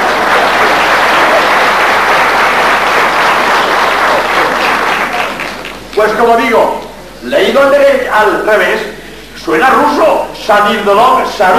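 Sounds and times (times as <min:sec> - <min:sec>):
audience applause: 0:00.0 - 0:06.0
speech: 0:06.2 - 0:11.5.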